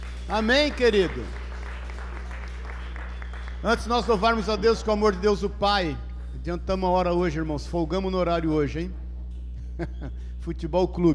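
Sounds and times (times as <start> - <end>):
audience applauding: 0.0 - 7.5
laughter: 0.0 - 8.8, 9.5 - 10.7
speech: 0.3 - 1.4, 3.6 - 9.0, 9.8 - 11.1.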